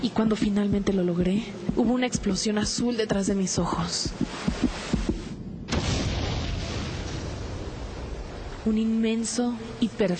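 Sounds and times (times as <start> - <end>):
speech: 0.0 - 4.7, 8.7 - 10.1
heavy heartbeat thumping in low double beats: 0.2 - 5.7
deep rushing rumble: 4.1 - 9.8.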